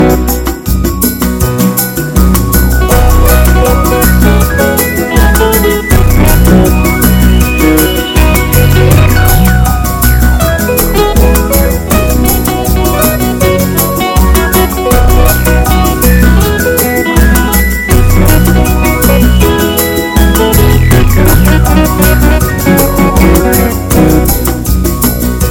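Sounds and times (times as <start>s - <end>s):
bossa nova: 0.0s - 25.5s.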